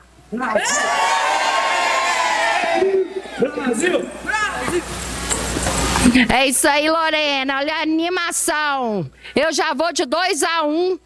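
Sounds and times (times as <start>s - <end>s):
speech: 0.3s - 1.1s, 3.5s - 5.1s, 6.1s - 11.0s
crowd of schoolchildren cheering and shouting: 0.6s - 4.7s.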